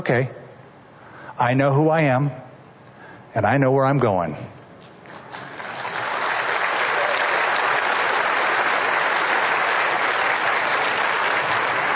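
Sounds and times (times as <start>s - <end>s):
speech: 0.0s - 0.4s, 1.4s - 2.4s, 3.3s - 4.6s
audience applause: 5.2s - 11.9s.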